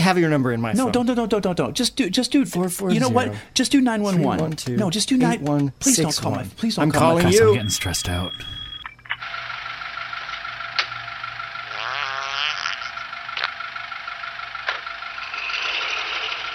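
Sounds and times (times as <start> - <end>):
speech: 0.1 - 8.6
fart sound effect: 11.7 - 13.5, 15.3 - 16.5.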